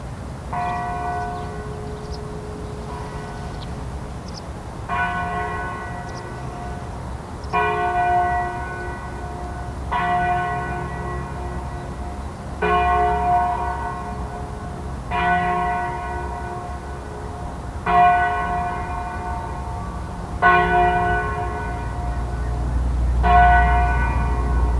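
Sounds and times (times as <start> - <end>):
bells: 0.4 - 24.7.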